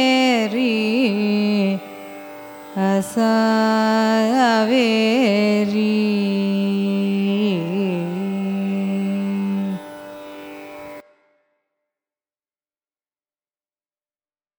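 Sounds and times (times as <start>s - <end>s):
carnatic raga music: 0.0s - 11.3s.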